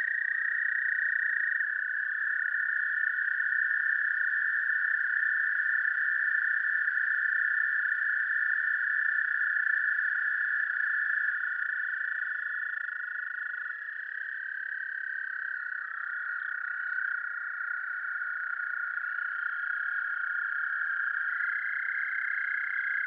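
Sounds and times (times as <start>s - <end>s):
American toad calling: 0.0s - 23.0s.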